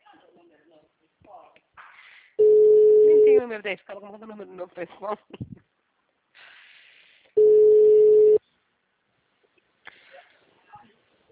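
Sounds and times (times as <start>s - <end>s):
telephone busy tone on a dropping call: 2.4s - 3.4s, 7.4s - 8.4s
speech: 3.5s - 5.6s.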